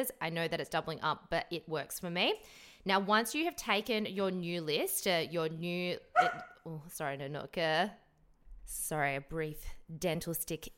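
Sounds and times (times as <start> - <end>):
speech: 0.0 - 8.0, 8.7 - 10.7
dog barking: 6.2 - 6.5.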